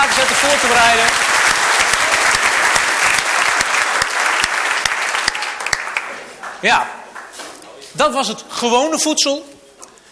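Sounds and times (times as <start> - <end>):
applause: 0.0 - 7.4
speech: 0.3 - 1.3, 6.6 - 7.0, 8.0 - 9.5.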